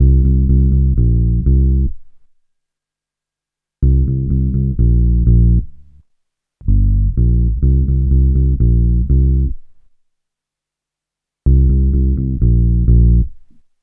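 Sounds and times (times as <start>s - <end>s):
reggae bass groove in C: 0.0s - 2.0s, 3.8s - 5.8s, 6.6s - 9.6s, 11.5s - 13.4s.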